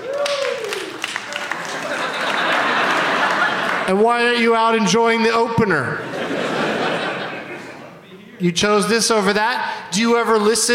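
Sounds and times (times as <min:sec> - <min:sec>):
audience applause: 0:00.0 - 0:04.0
laughter: 0:01.2 - 0:04.3, 0:06.0 - 0:08.1
speech: 0:03.9 - 0:06.1, 0:08.4 - 0:10.7.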